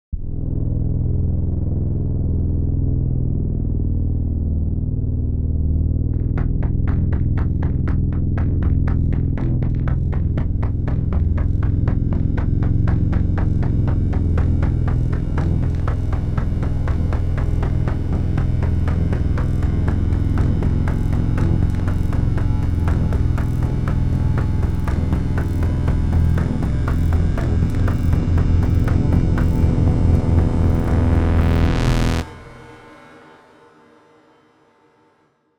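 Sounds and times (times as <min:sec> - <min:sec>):
rising bass: 0:00.1 - 0:32.7.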